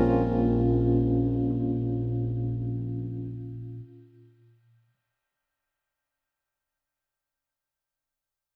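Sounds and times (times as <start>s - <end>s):
trumpet: 0.0s - 1.2s
clarinet: 0.0s - 4.1s.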